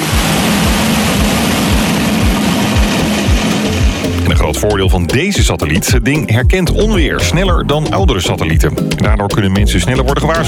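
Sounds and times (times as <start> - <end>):
satellite rocket launch liftoff roar: 0.0 - 5.4
speech: 4.5 - 10.4.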